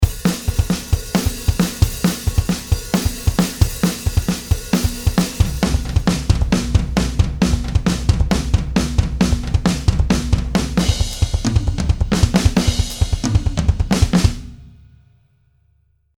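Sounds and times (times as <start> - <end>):
drum kit: 0.0 - 14.9.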